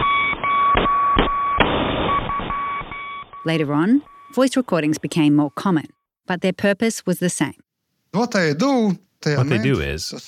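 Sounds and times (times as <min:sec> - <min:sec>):
Morse code beeps: 0:00.0 - 0:06.1
speech: 0:03.4 - 0:10.2.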